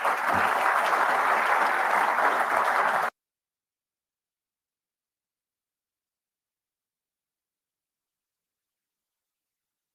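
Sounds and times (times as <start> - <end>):
audience applauding to welcome a lecturer at an evening lecture: 0.0 - 3.1.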